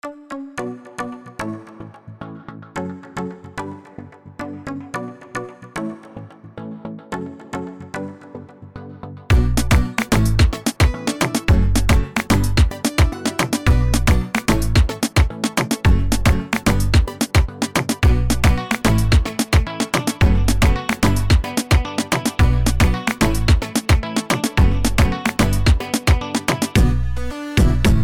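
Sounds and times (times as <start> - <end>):
urban reggaeton sample kit: 9.3 - 27.0, 27.6 - 28.0.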